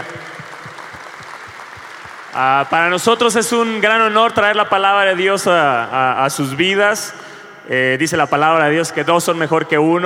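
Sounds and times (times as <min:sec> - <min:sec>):
audience applause: 0:00.0 - 0:03.1
speech: 0:02.4 - 0:10.0.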